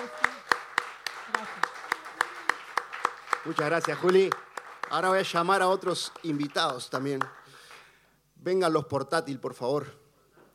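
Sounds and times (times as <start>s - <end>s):
audience applause: 0.0s - 7.9s
speech: 3.4s - 7.4s, 8.4s - 10.0s.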